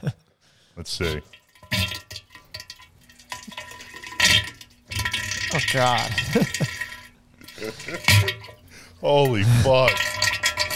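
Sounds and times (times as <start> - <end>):
speech: 0.8 - 1.4, 5.5 - 6.7, 7.6 - 10.3
big toilet blowout fart: 1.6 - 2.2, 3.4 - 8.6, 9.4 - 10.7.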